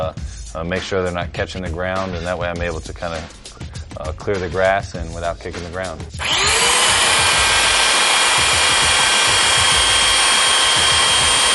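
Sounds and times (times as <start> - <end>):
speech: 0.0 - 3.4, 4.0 - 6.6
sanding machine grinding down football kicking cleat studs: 6.2 - 11.5.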